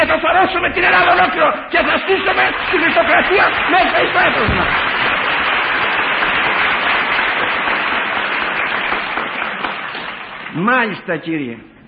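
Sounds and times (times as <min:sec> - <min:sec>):
speech: 0:00.1 - 0:05.2, 0:10.6 - 0:11.8
crowd applause: 0:01.8 - 0:10.6.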